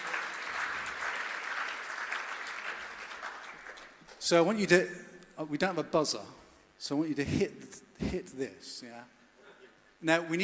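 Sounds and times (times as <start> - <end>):
audience applause: 0.0 - 4.0
speech: 4.3 - 9.2, 10.0 - 10.4.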